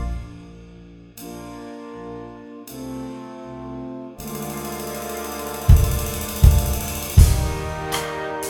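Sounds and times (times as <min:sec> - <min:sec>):
glockenspiel playing at practice tempo: 0:04.2 - 0:07.9.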